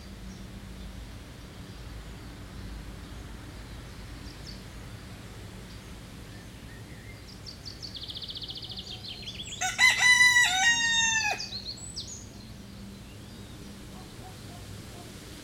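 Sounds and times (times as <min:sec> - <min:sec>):
outdoor sounds: 0:00.0 - 0:15.4
loud rooster: 0:09.5 - 0:11.7.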